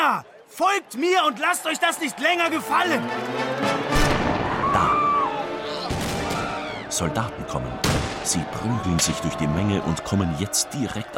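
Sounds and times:
speech: 0.1s - 3.9s, 6.9s - 11.1s
gunshot: 4.0s - 4.7s, 5.9s - 6.5s, 7.8s - 8.3s.

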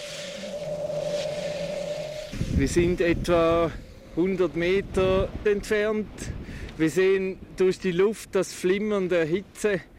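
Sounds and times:
volcano hissing during small eruption: 0.0s - 4.4s
speech: 2.6s - 9.9s.

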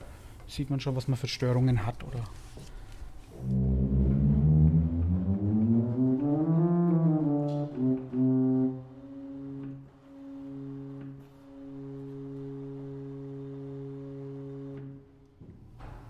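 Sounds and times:
speech: 0.5s - 2.7s
church organ pipes sounding deep buzzy sustained tones: 3.4s - 15.2s.

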